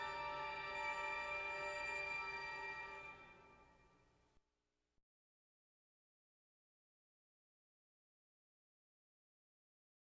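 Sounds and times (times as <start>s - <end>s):
violins playing a rhapsody: 0.0s - 3.7s.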